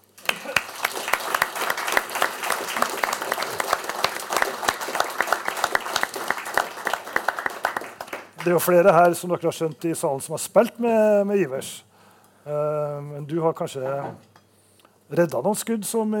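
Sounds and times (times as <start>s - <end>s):
audience applause for keeper coming on stage: 0.0s - 9.2s
speech: 8.4s - 11.9s, 12.5s - 14.3s, 15.1s - 16.1s.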